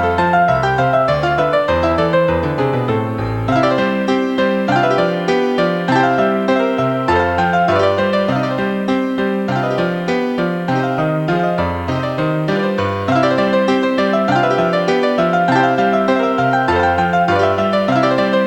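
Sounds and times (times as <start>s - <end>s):
two pianos playing a Romanian dance: 0.0s - 18.4s.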